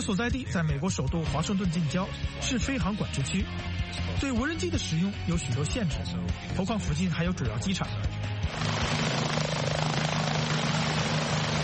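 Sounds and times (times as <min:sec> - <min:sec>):
speech: 0:00.0 - 0:08.8
helicopter rotor thumping overhead: 0:08.5 - 0:11.6.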